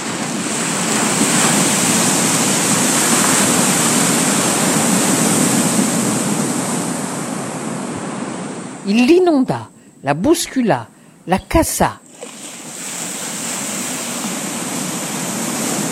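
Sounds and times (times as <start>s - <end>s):
large ocean waves crashing on shore: 0.0s - 15.9s
speech: 8.9s - 12.0s.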